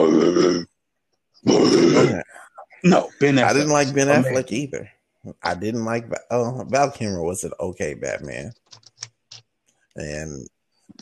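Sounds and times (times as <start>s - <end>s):
voice imitating a death metal growl: 0.0s - 0.7s, 1.4s - 2.3s
speech: 2.8s - 8.8s, 10.0s - 10.5s.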